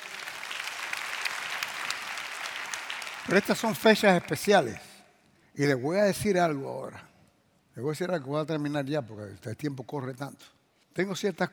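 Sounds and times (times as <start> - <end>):
audience applause: 0.0 - 5.0
speech: 3.2 - 4.9, 5.6 - 7.1, 7.8 - 11.5.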